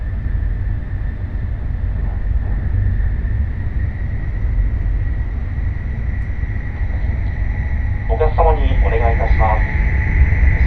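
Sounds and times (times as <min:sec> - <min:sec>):
Nishi-Kyushu Shinkansen Kamome train rumbling: 0:00.0 - 0:10.6
thin constant whine: 0:06.2 - 0:10.6
spoken train announcement: 0:08.0 - 0:09.7.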